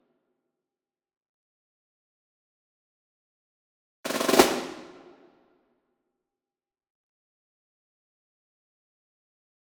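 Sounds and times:
medium marching snare drum roll: 4.1s - 5.2s.

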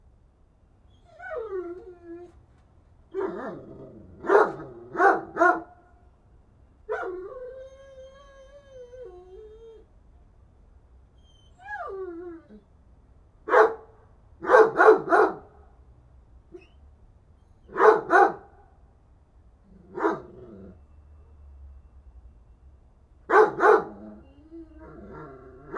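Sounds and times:
dog barking: 4.2s - 5.8s, 6.9s - 7.2s, 13.5s - 15.5s, 17.7s - 18.6s, 19.9s - 20.4s, 23.3s - 24.0s.

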